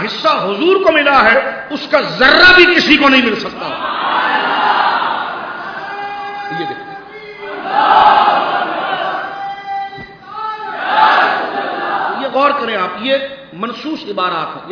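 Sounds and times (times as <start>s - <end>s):
speech: 0.0s - 3.9s, 12.7s - 14.7s
crowd shouting a religious slogan at a gathering: 3.7s - 12.4s.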